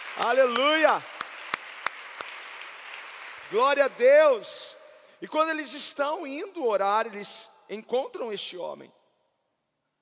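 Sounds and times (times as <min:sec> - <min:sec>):
audience applause: 0:00.0 - 0:04.1
speech: 0:00.2 - 0:01.1, 0:03.5 - 0:09.0.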